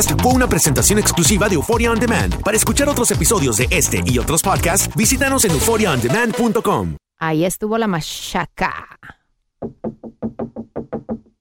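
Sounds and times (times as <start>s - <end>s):
speech: 0.0s - 9.8s
knocking on a bathroom door: 9.6s - 11.4s.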